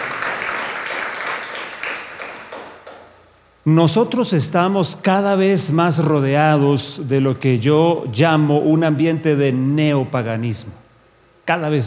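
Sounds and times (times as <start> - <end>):
crowd applause: 0.0 - 3.0
speech: 3.6 - 10.8, 11.5 - 11.8.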